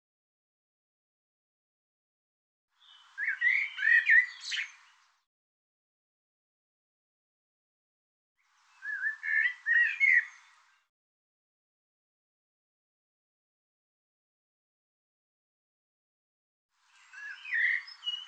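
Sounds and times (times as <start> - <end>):
bird song: 2.7 - 5.3, 8.4 - 10.9, 16.8 - 18.2.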